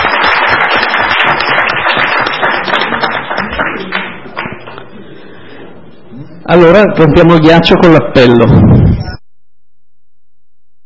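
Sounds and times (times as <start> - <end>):
audience applause: 0.0 - 4.8
speech: 6.5 - 8.8.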